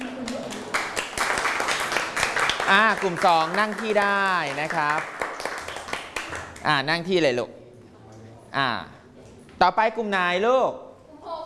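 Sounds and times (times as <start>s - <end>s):
classroom of students applauding: 0.0s - 6.7s
speech: 2.7s - 5.2s, 6.6s - 7.6s, 8.5s - 9.0s, 9.6s - 10.8s.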